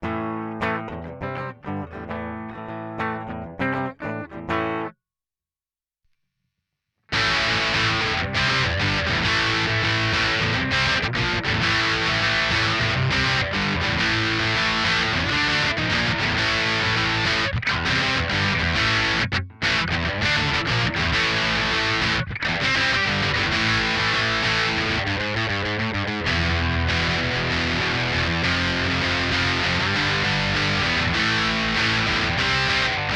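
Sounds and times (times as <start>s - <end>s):
electric guitar through Vox Valvenergy Copperhead Drive cab: 0.0s - 5.0s, 7.1s - 33.1s.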